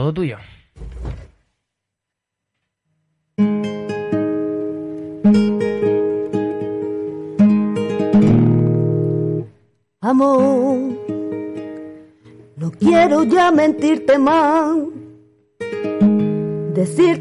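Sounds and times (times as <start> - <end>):
speech: 0.0 - 0.6, 12.9 - 15.0, 16.8 - 17.2
thump: 0.8 - 1.5
acoustic guitar strumming chords with reverb: 3.4 - 17.2.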